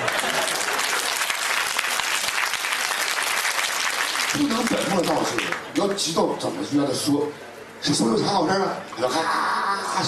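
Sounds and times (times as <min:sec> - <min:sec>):
audience applause: 0:00.0 - 0:05.8
speech: 0:04.4 - 0:10.0.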